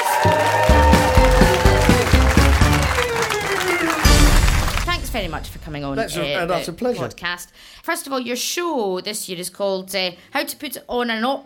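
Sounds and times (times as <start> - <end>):
audience applause: 0.0 - 6.6
speech: 5.3 - 11.4.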